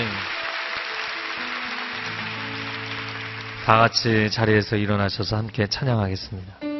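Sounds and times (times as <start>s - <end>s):
audience applause: 0.0s - 4.7s
speech: 3.7s - 6.6s.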